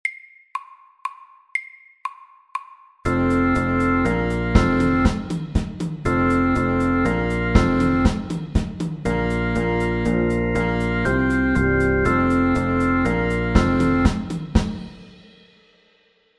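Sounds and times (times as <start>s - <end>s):
fusion music: 3.1s - 14.9s.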